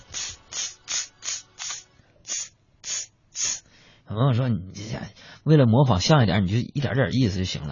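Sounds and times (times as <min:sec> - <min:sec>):
voice imitating insect repellent spray hissing: 0:00.0 - 0:03.7
speech: 0:04.1 - 0:07.7.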